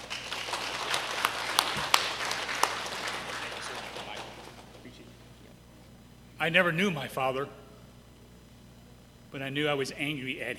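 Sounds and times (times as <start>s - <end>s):
audience applause welcoming a guest speaker from the Ministry of Gideons: 0.0s - 5.0s
speech: 6.4s - 7.6s, 9.3s - 10.5s.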